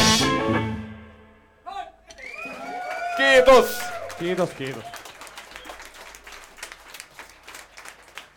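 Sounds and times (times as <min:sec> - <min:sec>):
small round of applause: 0:02.1 - 0:08.3
speech: 0:03.2 - 0:05.0.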